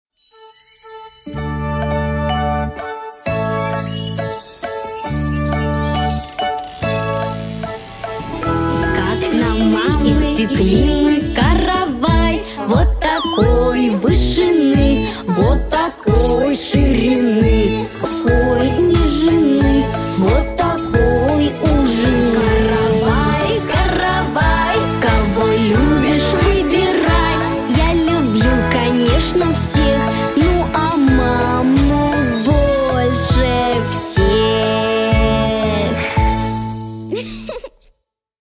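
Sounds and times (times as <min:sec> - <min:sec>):
instrumental music: 0:00.1 - 0:37.2.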